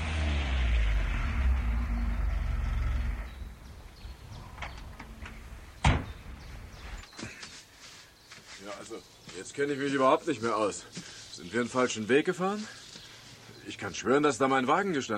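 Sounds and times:
tow truck engine approaching: 0.0s - 7.0s
speech: 8.7s - 12.8s, 13.7s - 15.1s.

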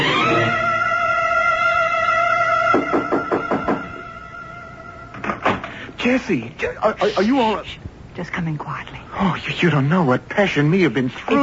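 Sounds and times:
apartment door buzzer droning: 0.0s - 5.4s
speech: 6.1s - 11.4s.

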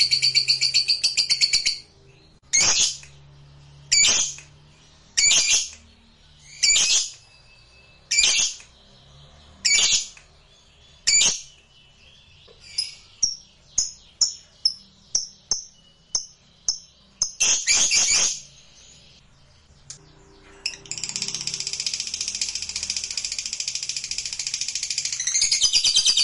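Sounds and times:
lovebird singing high shrill notes: 0.0s - 26.2s.

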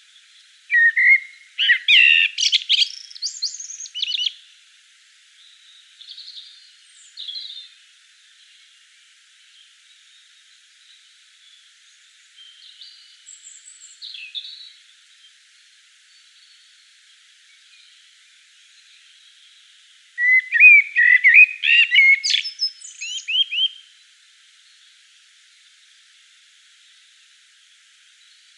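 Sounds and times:
common blackbird singing in Provence at dusk: 0.7s - 4.4s, 5.4s - 7.7s, 12.4s - 14.8s, 20.2s - 23.9s.

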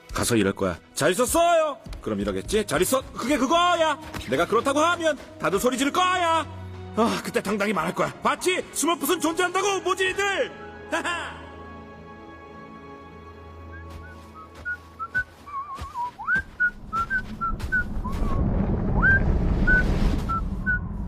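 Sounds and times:
speech: 0.2s - 11.4s
howling blizzard wind: 16.1s - 21.0s.

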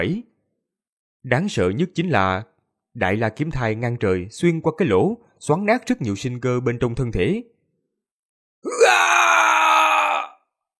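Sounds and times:
speech: 0.0s - 0.3s, 1.2s - 7.5s
voice performing a loud cry of pain for the character Tàn Tiên: 8.6s - 10.4s.

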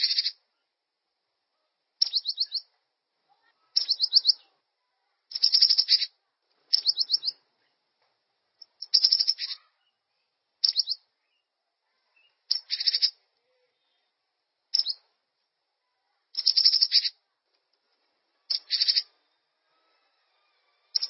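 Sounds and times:
bird song of fast high chirps and trills: 0.0s - 0.4s, 2.0s - 2.7s, 3.4s - 4.6s, 5.3s - 7.4s, 8.6s - 10.0s, 10.6s - 13.2s, 14.6s - 15.1s, 16.3s - 17.2s, 18.5s - 20.1s, 20.8s - 21.0s.

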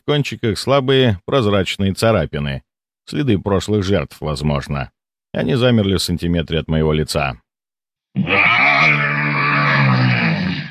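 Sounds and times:
speech: 0.0s - 7.4s, 8.2s - 9.0s
gravelly monster roar voiced by a person: 8.2s - 10.6s.

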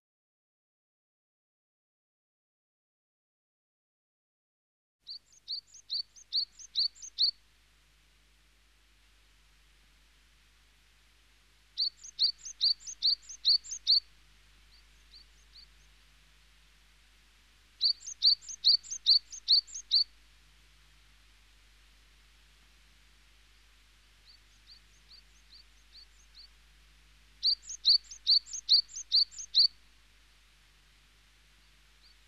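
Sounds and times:
small bird chirping: 5.1s - 7.4s, 11.7s - 16.5s, 17.8s - 20.1s, 24.1s - 30.6s.

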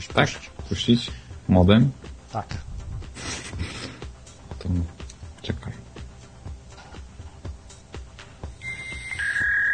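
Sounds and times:
speech: 0.0s - 2.7s, 4.6s - 5.8s
SMS notification ringtone played from phone: 8.6s - 9.6s.

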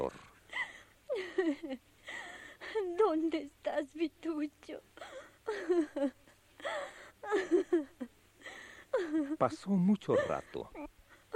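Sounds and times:
woman sobbing uncontrollably: 0.5s - 11.3s
speech: 1.4s - 8.1s, 9.0s - 11.0s.

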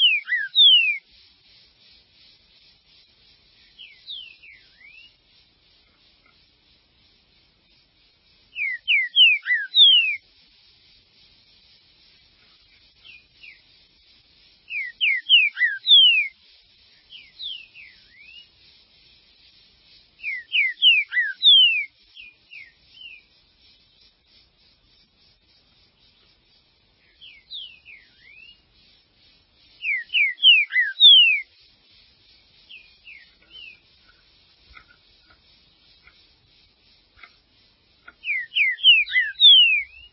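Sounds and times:
green-winged saltator whistling: 0.0s - 1.0s, 3.8s - 5.2s, 8.5s - 10.2s, 13.0s - 13.6s, 14.6s - 16.4s, 17.1s - 18.6s, 20.2s - 23.3s, 27.1s - 28.7s, 29.8s - 31.5s, 32.7s - 33.8s, 38.0s - 40.1s.

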